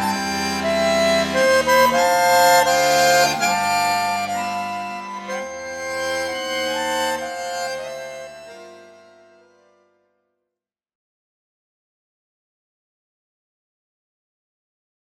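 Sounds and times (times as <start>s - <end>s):
accordion: 0.0s - 10.1s.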